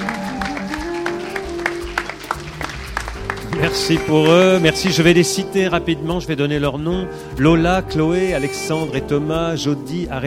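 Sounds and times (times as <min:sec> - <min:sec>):
applause for students: 0:00.0 - 0:04.7
speech: 0:03.6 - 0:10.2.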